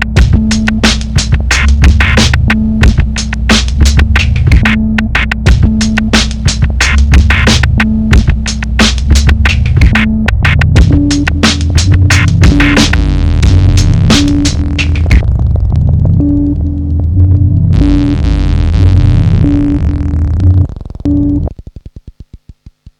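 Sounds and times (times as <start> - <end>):
8-bit drum break: 0.0 - 22.9.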